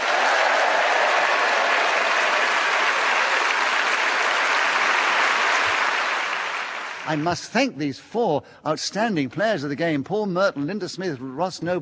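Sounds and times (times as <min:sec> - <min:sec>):
crowd applauding: 0:00.0 - 0:07.6
speech: 0:07.1 - 0:11.8.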